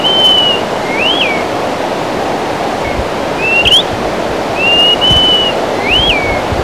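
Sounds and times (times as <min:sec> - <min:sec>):
greater pewee singing clear whistles: 0:00.0 - 0:01.7, 0:02.7 - 0:04.0, 0:04.6 - 0:06.5.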